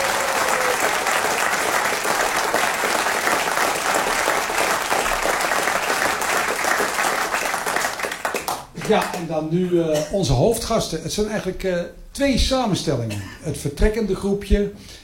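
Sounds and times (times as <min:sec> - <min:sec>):
audience applause: 0:00.0 - 0:09.2
speech: 0:08.9 - 0:15.0.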